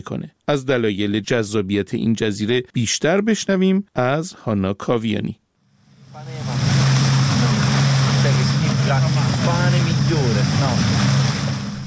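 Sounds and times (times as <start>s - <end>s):
speech: 0.0s - 5.4s, 8.9s - 11.1s
engine drone: 5.8s - 11.8s
surf washing on a busy beach: 5.9s - 11.8s.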